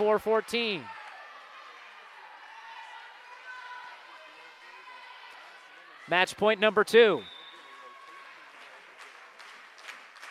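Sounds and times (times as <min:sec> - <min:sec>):
speech: 0:00.0 - 0:01.0, 0:06.1 - 0:07.3
crowd clapping in a gym at a volleyball match: 0:00.0 - 0:01.6, 0:08.2 - 0:10.2.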